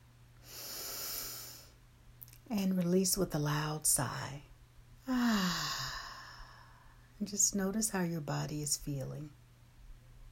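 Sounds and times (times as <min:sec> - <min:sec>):
deep inhale during a guided breathing exercise: 0:00.4 - 0:01.8, 0:05.1 - 0:07.1
speech: 0:02.5 - 0:04.5, 0:07.2 - 0:09.4.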